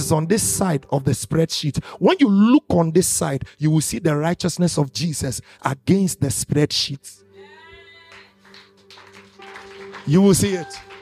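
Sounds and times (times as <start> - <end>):
speech: 0.1 - 7.2, 10.0 - 10.9
audience clapping: 8.1 - 10.9.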